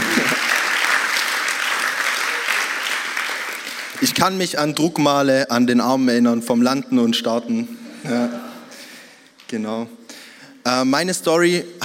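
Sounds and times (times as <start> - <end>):
audience applause: 0.0 - 4.2
speech: 4.0 - 8.5, 9.5 - 10.0, 10.6 - 11.8.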